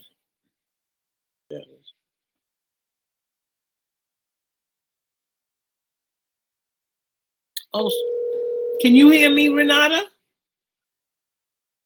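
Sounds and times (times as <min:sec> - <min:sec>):
speech: 0:01.5 - 0:02.0, 0:07.7 - 0:08.2, 0:08.8 - 0:10.1
busy tone after a phone call dropped: 0:07.8 - 0:09.7.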